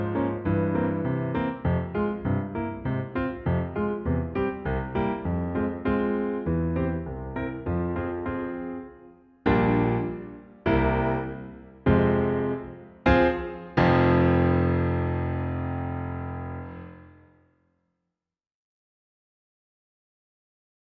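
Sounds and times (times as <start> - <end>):
baritone solo accompaniment: 0.0 - 16.1.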